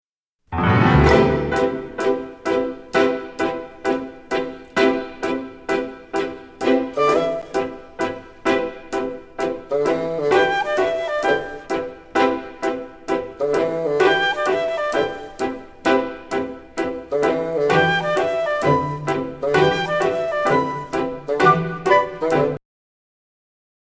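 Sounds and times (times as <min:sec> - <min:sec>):
callback accompaniment: 0:00.5 - 0:22.6.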